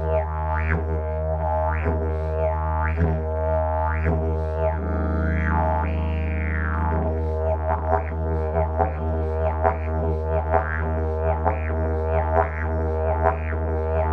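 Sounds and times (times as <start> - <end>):
didgeridoo: 0.0 - 14.1.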